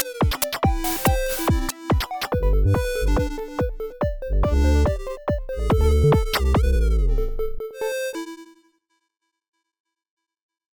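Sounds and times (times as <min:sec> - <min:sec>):
chiptune opener music: 0:00.0 - 0:08.5.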